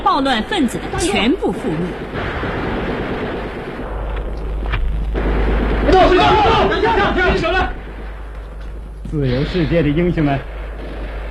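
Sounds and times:
steady low rumble: 0.0 - 11.2
speech: 0.1 - 2.5, 6.1 - 7.8, 9.1 - 10.5
scattered gunshots: 0.9 - 11.2
overlapping shouting voices: 5.9 - 7.8.

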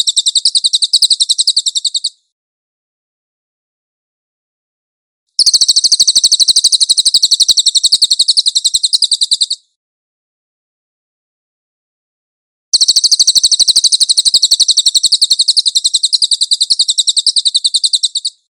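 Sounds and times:
cililin chattering trills: 0.0 - 2.2, 5.4 - 9.6, 12.8 - 18.5.

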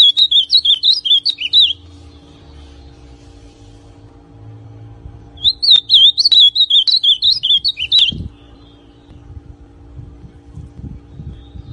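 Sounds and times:
ultramarine grosbeak song: 0.0 - 2.5, 5.4 - 9.2, 11.1 - 11.7.

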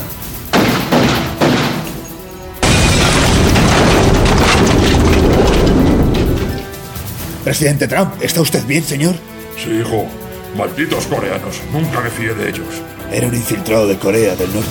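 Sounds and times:
sharp bangs: 0.4 - 6.8
mobile phone explosion: 2.6 - 6.6
speech: 7.5 - 14.6.

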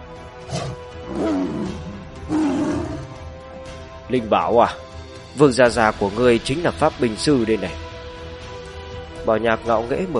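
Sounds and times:
tiger roaring: 0.4 - 3.3
speech: 4.1 - 7.8, 9.2 - 10.1.

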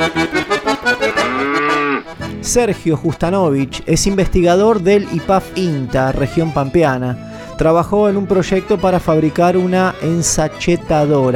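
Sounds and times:
speech: 0.0 - 0.4, 2.4 - 11.3
cows mooing: 0.0 - 2.4.

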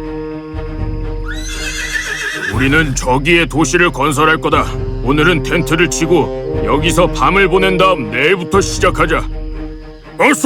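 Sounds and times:
horse whinnying in a large wagon procession: 1.2 - 3.0
speech: 2.6 - 9.4, 10.2 - 10.4.

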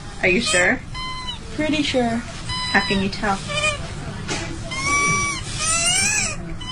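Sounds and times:
speech: 0.2 - 0.9, 1.5 - 3.6
squeaky chicken toy squeaking inside a breathing child: 0.4 - 1.5, 2.4 - 3.8, 4.7 - 6.7.

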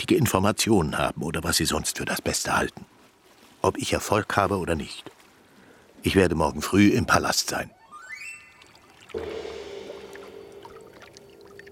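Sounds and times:
speech: 0.0 - 3.0, 3.6 - 5.2, 6.0 - 7.8, 9.1 - 9.5
calm bay water lapping against a moored boat on a moonlit night: 0.9 - 6.8, 8.4 - 11.6.

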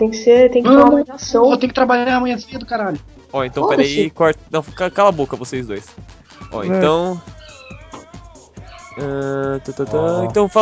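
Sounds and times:
speech: 0.0 - 7.4, 9.0 - 10.5
laughter: 3.4 - 7.7, 9.0 - 10.5
cat meowing: 6.4 - 9.2.

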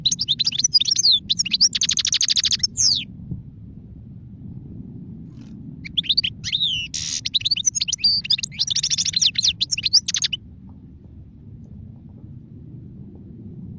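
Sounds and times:
European goldfinch singing with twittering, chirps and buzzy trills: 0.0 - 3.0, 5.8 - 10.4.

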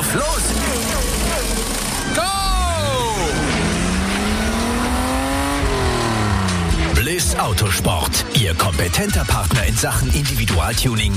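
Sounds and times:
race car engine revving in pit lane: 0.0 - 8.4
speech: 0.1 - 0.4, 7.4 - 11.1.

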